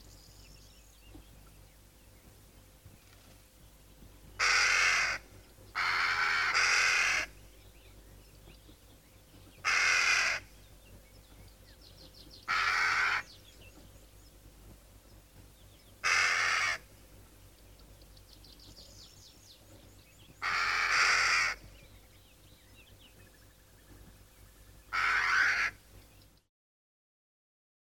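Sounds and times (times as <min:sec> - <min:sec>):
two crows cawing: 0:04.4 - 0:07.4, 0:09.6 - 0:10.5, 0:12.4 - 0:13.4, 0:16.0 - 0:16.9, 0:20.4 - 0:21.7, 0:24.9 - 0:25.9.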